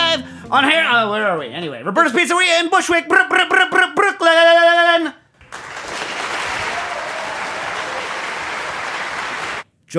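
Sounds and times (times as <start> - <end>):
speech: 0.5 - 5.2
audience clapping: 5.3 - 9.7.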